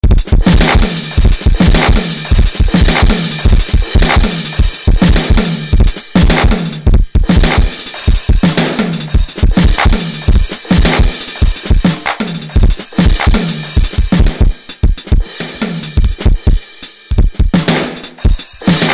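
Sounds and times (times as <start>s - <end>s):
randomized beat: 0.0s - 18.9s.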